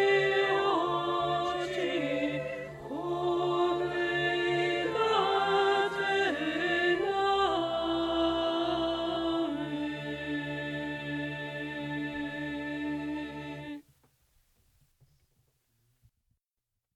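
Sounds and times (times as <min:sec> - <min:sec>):
alto singing: 0:00.0 - 0:13.8.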